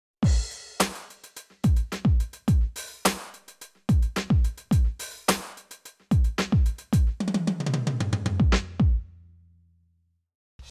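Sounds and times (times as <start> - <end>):
Millenium MPS450 electronic drum kit dance beat: 0.2 - 7.6, 8.3 - 9.0.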